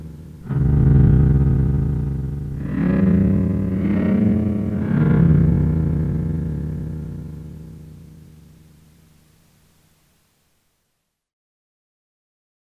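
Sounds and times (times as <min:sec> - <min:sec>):
Microfreak synthesizer cello scan grains engine: 0:00.0 - 0:08.1.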